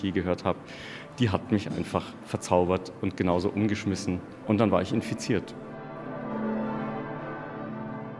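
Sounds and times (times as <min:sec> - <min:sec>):
speech: 0:00.0 - 0:05.7
church bell ringing in Eichstätt cathedral: 0:03.7 - 0:08.1.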